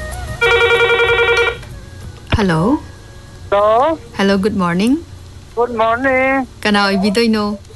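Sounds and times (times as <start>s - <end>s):
telephone ringing for an incoming call: 0.4s - 1.7s
speech: 2.4s - 2.9s, 3.5s - 7.7s.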